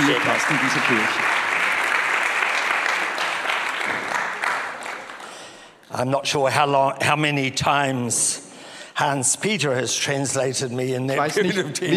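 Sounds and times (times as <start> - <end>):
audience applause: 0.0 - 5.7
speech: 0.1 - 1.5, 5.9 - 8.4, 9.0 - 11.9.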